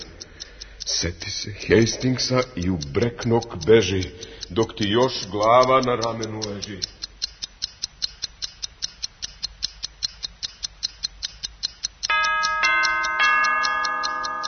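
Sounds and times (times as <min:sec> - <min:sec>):
clock ticking: 0:00.0 - 0:14.4
speech: 0:01.0 - 0:07.0
clock striking ten with bell-like chimes: 0:12.1 - 0:14.4.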